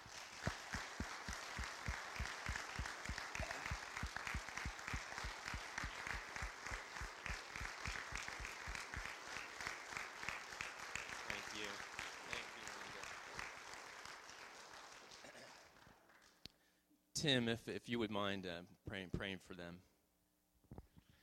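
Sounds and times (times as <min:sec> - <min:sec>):
crowd applauding: 0:00.0 - 0:16.4
speech: 0:17.2 - 0:19.9.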